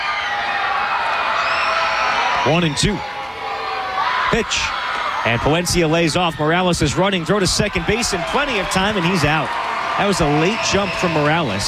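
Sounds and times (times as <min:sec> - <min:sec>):
ballpark crowd cheering loudly: 0:00.0 - 0:11.6
speech: 0:02.4 - 0:03.1, 0:04.3 - 0:11.6.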